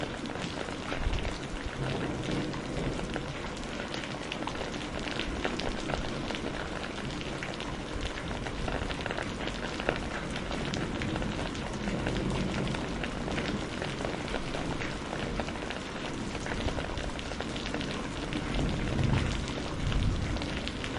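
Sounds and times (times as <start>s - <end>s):
spring rainstorm: 0.0s - 20.9s.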